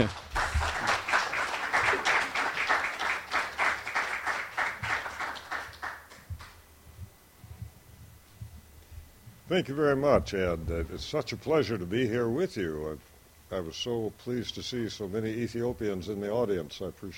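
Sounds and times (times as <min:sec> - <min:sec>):
speech: 0:00.0 - 0:00.2, 0:09.5 - 0:17.1
audience applause welcoming a speaker at a lecture in Baltimore: 0:00.0 - 0:06.6.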